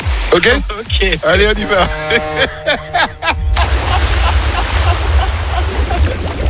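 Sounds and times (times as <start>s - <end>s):
speech: 0.3s - 3.1s
laughter: 1.4s - 6.4s
person diving into warm sea water: 3.4s - 6.4s.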